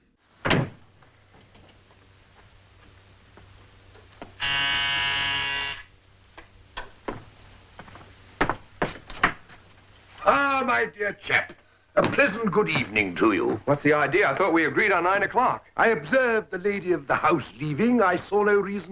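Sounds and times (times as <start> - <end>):
door closing: 0.4 - 0.9
doorbell ringing: 4.4 - 5.8
speech: 10.7 - 18.9.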